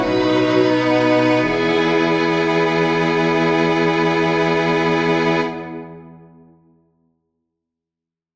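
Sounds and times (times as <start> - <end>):
string quartet playing a chorale: 0.0 - 6.2.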